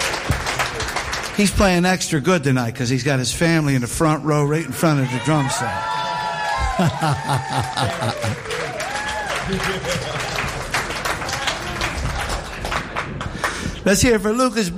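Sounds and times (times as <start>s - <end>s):
crowd applause for drummer: 0.0s - 1.8s, 5.4s - 13.8s
speech: 1.4s - 6.0s, 6.8s - 8.6s, 9.5s - 10.4s, 13.8s - 14.7s
cheers and whoops: 5.0s - 10.0s
chuckling: 6.6s - 8.8s, 9.4s - 10.6s.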